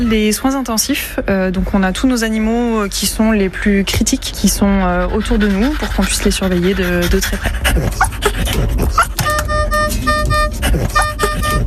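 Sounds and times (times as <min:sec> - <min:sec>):
speech: 0:00.0 - 0:09.2
infusion pump alarms beeping: 0:09.2 - 0:11.6.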